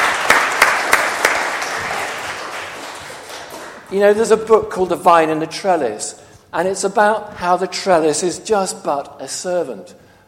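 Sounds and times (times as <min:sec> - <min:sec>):
audience applause: 0:00.0 - 0:03.9
speech: 0:03.9 - 0:10.2.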